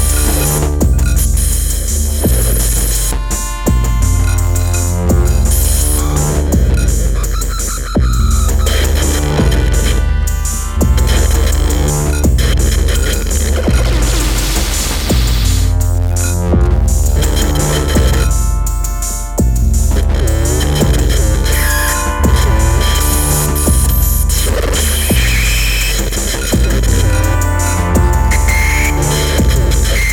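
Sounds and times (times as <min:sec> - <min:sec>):
dub music: 0:00.0 - 0:30.1
noise: 0:00.0 - 0:30.1.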